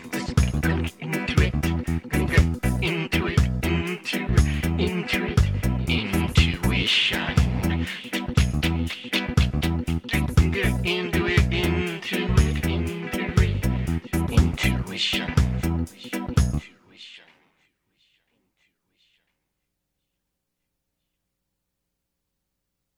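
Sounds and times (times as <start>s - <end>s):
soundcheck: 0.0s - 16.6s.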